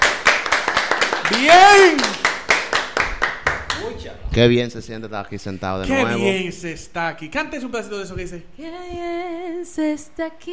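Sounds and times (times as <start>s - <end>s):
audience applause: 0.0s - 3.9s
speech: 1.3s - 2.2s, 4.1s - 10.5s.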